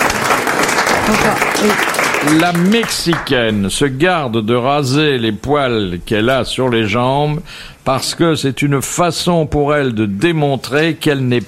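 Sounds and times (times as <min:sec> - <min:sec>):
audience applause: 0:00.0 - 0:03.4
speech: 0:01.1 - 0:11.4.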